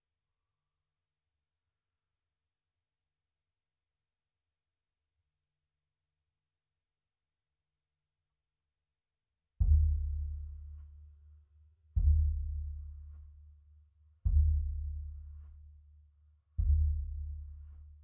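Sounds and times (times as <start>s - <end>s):
sub bass: 9.6s - 10.9s, 12.0s - 13.4s, 14.2s - 15.5s, 16.6s - 18.0s.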